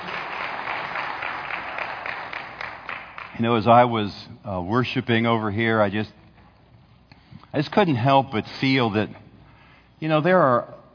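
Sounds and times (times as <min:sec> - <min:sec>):
audience applause: 0:00.0 - 0:03.4
speech: 0:03.4 - 0:06.2, 0:07.6 - 0:09.2, 0:10.0 - 0:10.8.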